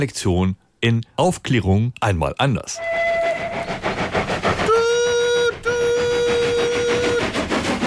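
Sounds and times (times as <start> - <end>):
speech: 0.0 - 3.0
moving train chuffing and rumbling: 2.7 - 7.8
steam locomotive whistle blasts: 2.8 - 7.4.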